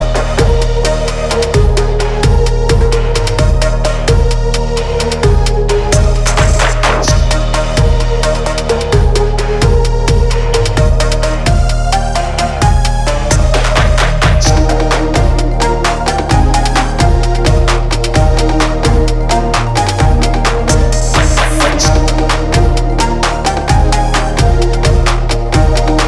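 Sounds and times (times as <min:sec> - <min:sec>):
808 bass drop instrumental mix: 0:00.0 - 0:26.0.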